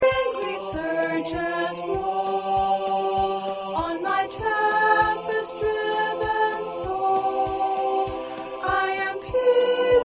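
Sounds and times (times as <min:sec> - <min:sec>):
soprano singing choir parts: 0:00.0 - 0:10.0.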